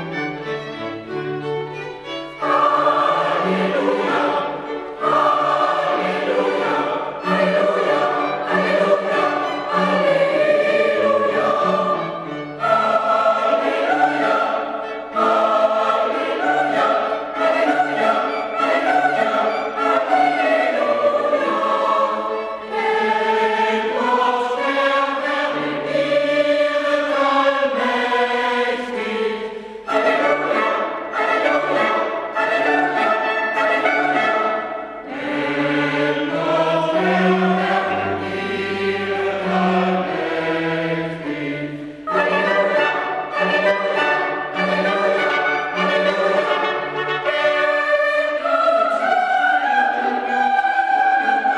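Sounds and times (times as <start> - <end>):
choral hymn singing: 0.1 - 51.5.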